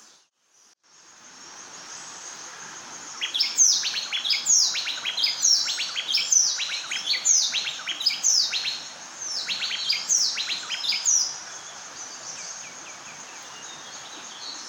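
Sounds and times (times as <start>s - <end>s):
background hiss: 0.0s - 14.6s
bay wren singing whistled phrases: 3.1s - 14.6s.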